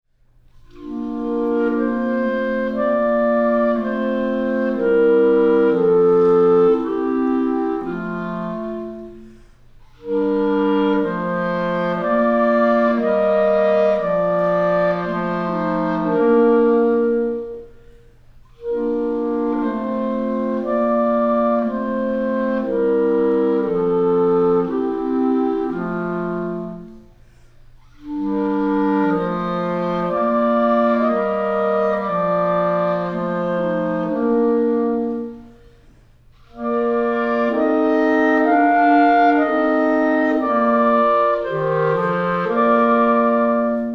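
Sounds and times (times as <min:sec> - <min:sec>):
chorale: 0:00.5 - 0:43.9.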